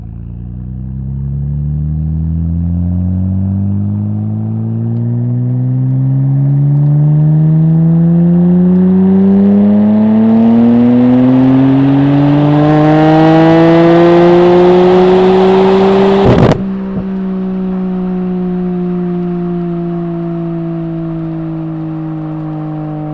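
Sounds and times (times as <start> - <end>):
Nissan R33 Skyline exhaust on ramps during drive: 0.0 - 23.1.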